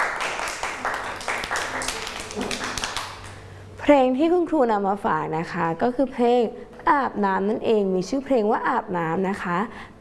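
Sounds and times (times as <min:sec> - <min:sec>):
children clapping hands: 0:00.0 - 0:03.4
speech: 0:03.9 - 0:09.9.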